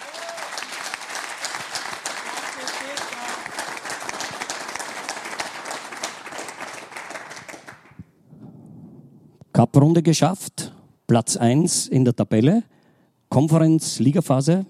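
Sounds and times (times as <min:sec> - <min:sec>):
audience applause: 0:00.0 - 0:08.0
speech: 0:09.6 - 0:12.7, 0:13.3 - 0:14.6.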